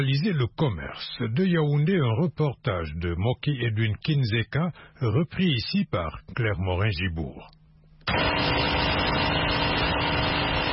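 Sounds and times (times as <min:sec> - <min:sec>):
speech: 0:00.0 - 0:09.6
generator powering the flour mill of a bakery in Obili, Yaoundé: 0:08.1 - 0:10.7.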